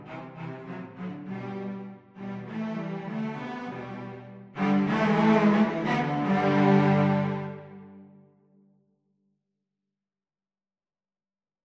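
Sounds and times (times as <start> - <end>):
cello trio playing: 0.0 - 8.1.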